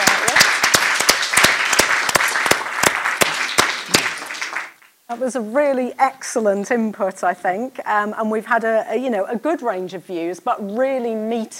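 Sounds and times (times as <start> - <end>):
round of applause: 0.0 - 4.9
speech: 5.1 - 11.5.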